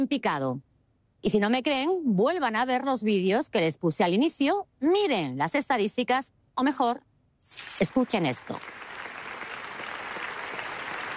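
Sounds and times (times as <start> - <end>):
speech: 0.0 - 8.8
festival audience ovation: 8.6 - 11.1.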